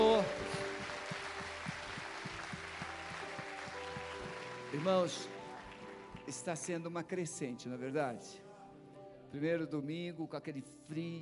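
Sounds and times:
crowd clapping: 0.0s - 6.9s
sustained music: 0.0s - 11.1s
speech: 4.8s - 5.4s, 6.3s - 8.4s, 9.3s - 11.1s.

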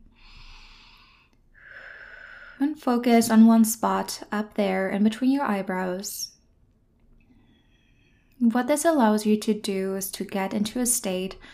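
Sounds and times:
slow deep breathing in a meditation exercise: 0.0s - 2.6s, 7.3s - 8.4s
speech: 2.6s - 6.4s, 8.4s - 11.5s.

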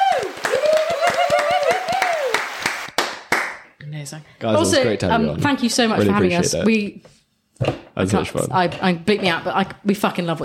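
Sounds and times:
applause: 0.0s - 3.7s
speech: 4.1s - 10.4s.

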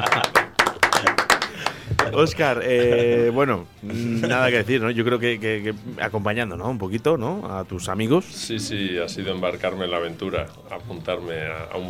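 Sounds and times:
hands clapping: 0.0s - 2.4s
laughter: 0.0s - 4.7s
speech: 2.1s - 11.8s.

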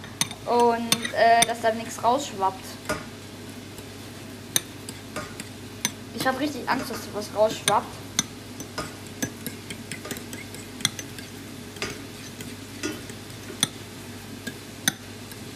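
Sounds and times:
low steady hum: 0.0s - 15.5s
speech: 1.2s - 3.0s, 6.2s - 8.0s
utensil stirring scrambled eggs in a bowl: 7.6s - 13.8s, 14.4s - 15.1s.

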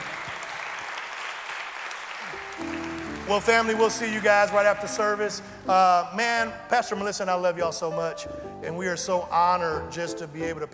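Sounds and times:
applause and hand clapping: 0.0s - 5.4s
speech: 2.6s - 10.7s.

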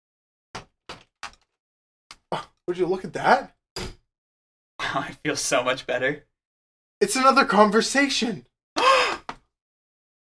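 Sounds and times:
speech: 2.3s - 3.6s, 4.9s - 6.3s, 7.0s - 8.5s
door being opened with sharp clunks: 3.8s - 4.0s.

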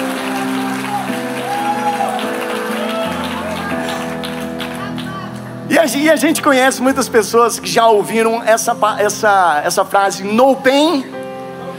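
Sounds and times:
audience applause: 0.0s - 5.5s
speech: 5.8s - 11.2s.

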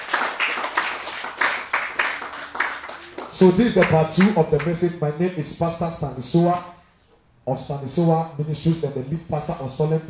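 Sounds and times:
crowd clapping in a steady rhythmic beat: 0.0s - 5.0s
speech: 3.4s - 6.8s, 7.4s - 10.0s.

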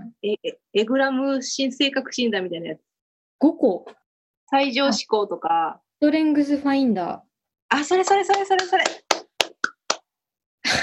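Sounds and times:
speech: 0.2s - 9.0s
applause sound effect: 8.0s - 10.0s.

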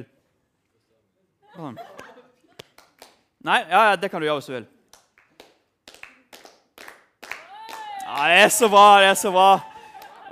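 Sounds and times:
speech: 1.6s - 2.0s, 3.4s - 4.8s, 8.1s - 9.7s
rhythmic hand clapping: 2.5s - 3.3s, 4.8s - 8.8s.

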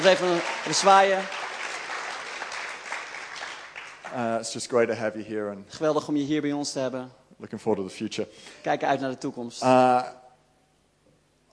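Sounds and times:
speech: 0.0s - 1.4s, 4.1s - 10.2s
audience applause: 0.0s - 4.6s.

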